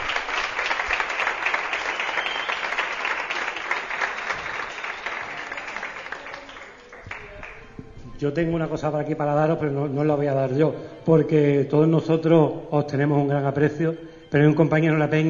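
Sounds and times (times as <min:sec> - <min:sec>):
audience applause: 0:00.0 - 0:07.7
speech: 0:08.2 - 0:15.2.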